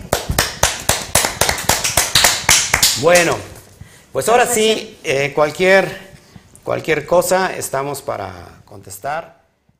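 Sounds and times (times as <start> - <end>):
applause: 0.0 - 3.3
speech: 3.0 - 3.5, 4.1 - 9.4.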